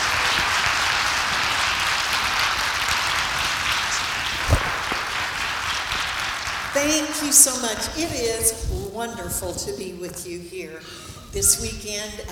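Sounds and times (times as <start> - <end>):
church congregation at a Sunday morning service clapping to welcome guest pastors: 0.0 - 8.2
speech: 6.8 - 12.3.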